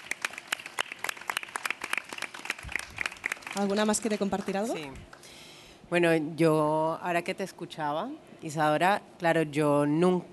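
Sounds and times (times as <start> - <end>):
audience applause: 0.0 - 4.8
speech: 3.6 - 5.2, 5.9 - 10.3.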